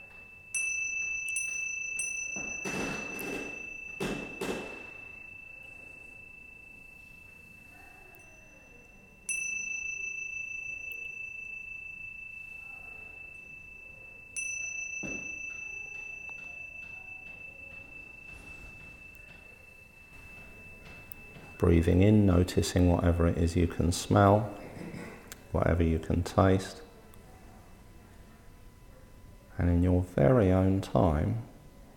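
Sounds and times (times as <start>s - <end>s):
meditation bell ringing: 0.0s - 31.9s
speech: 21.6s - 24.6s, 25.5s - 26.8s, 29.6s - 31.5s.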